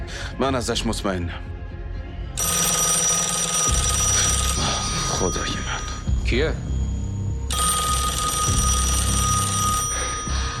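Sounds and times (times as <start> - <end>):
speech: 0.1 - 1.5, 5.2 - 6.7
telephone ringing with an electronic trill: 2.4 - 10.5.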